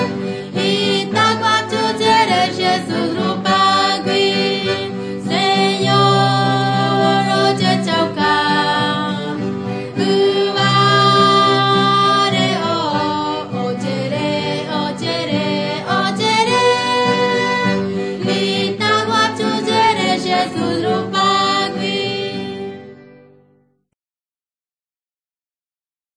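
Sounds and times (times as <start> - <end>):
Guarani Mbya songs being sung: 0.0 - 22.8.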